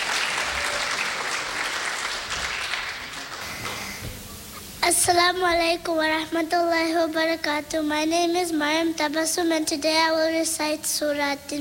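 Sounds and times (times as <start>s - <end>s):
audience applause: 0.0s - 4.1s
speech: 4.9s - 11.5s.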